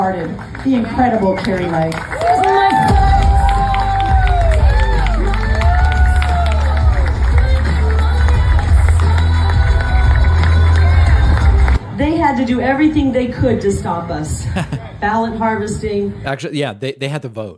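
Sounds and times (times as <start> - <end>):
speech: 0.0 - 3.0, 12.0 - 17.5
large crowd cheering a welcome: 0.7 - 11.9
laughter: 14.4 - 15.1.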